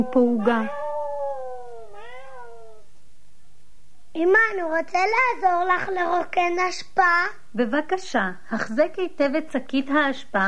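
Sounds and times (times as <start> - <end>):
speech: 0.0 - 0.8, 4.2 - 10.4
cat giving a long drawn-out meow: 0.0 - 2.9.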